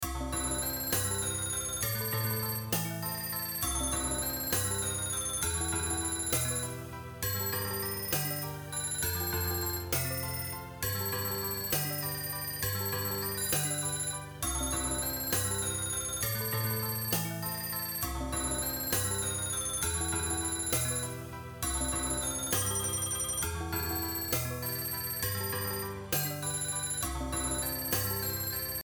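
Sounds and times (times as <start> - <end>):
music track: 0.0 - 28.8.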